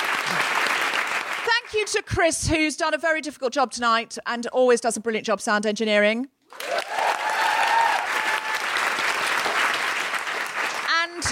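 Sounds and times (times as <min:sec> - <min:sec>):
crowd applauding: 0:00.0 - 0:01.7, 0:06.5 - 0:11.3
speech: 0:01.7 - 0:06.6.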